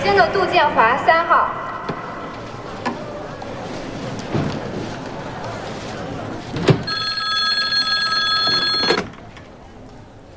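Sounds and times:
speech: 0:00.2 - 0:01.2
telephone line hiss: 0:06.9 - 0:09.1.

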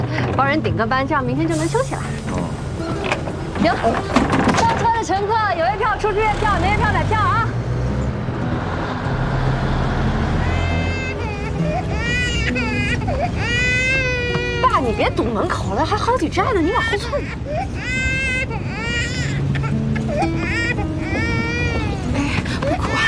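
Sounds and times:
speech: 0:00.0 - 0:02.2, 0:02.8 - 0:07.4, 0:12.5 - 0:13.7, 0:14.8 - 0:18.2
bus engine and road rumble: 0:00.0 - 0:23.0
baby crying on a crowded city bus: 0:10.4 - 0:23.0.

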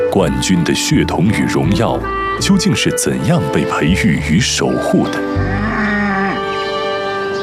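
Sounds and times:
speech: 0:00.2 - 0:05.6
cow mooing on a French family cattle farm: 0:04.7 - 0:07.3.

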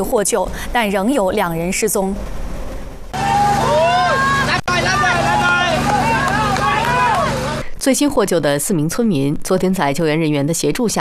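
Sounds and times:
speech: 0:00.0 - 0:02.4, 0:07.8 - 0:10.9
crowd cheering at rescue site: 0:03.1 - 0:07.6.

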